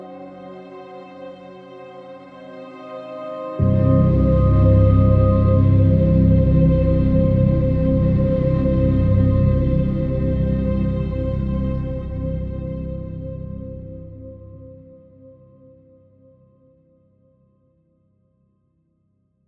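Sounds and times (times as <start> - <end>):
metallic drone: 3.6 - 14.6.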